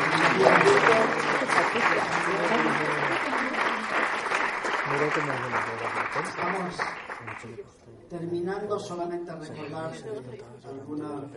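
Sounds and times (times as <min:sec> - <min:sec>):
audience applause: 0:00.0 - 0:07.6
speech: 0:05.2 - 0:11.3.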